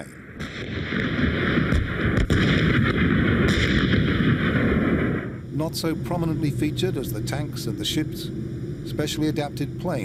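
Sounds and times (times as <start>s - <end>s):
howitzer artillery fire pounding targets: 0.3s - 6.3s
sharp crack: 0.4s - 5.4s
speech: 5.6s - 10.0s.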